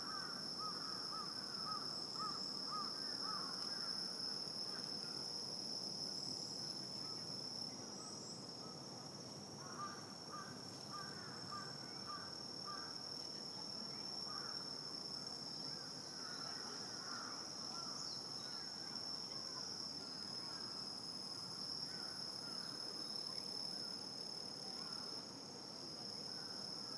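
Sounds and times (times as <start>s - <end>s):
cricket trilling in Shibuya, Tokyo: 0.0s - 26.9s.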